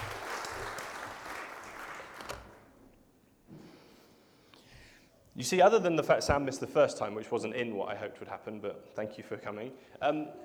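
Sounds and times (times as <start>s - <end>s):
audience applause: 0.0s - 2.8s
speech: 5.4s - 10.4s.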